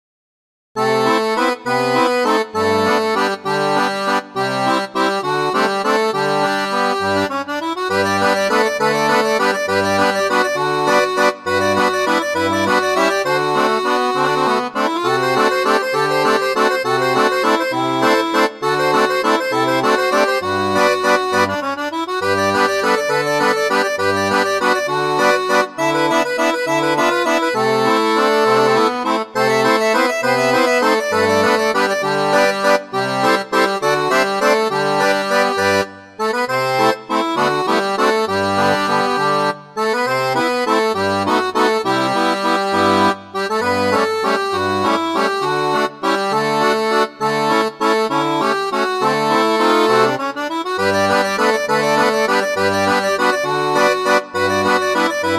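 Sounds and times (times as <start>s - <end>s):
barrel organ: 0.8s - 55.3s.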